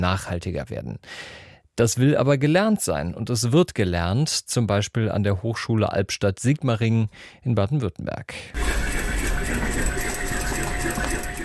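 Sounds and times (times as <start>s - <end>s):
speech: 0.0s - 9.8s
sewing machines in a university clothing lab textile workshop: 8.6s - 11.4s.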